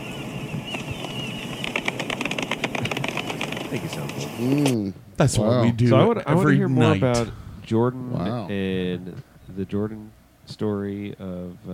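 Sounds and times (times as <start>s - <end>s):
golf clap sound effect: 0.0s - 4.3s
speech: 3.7s - 11.7s.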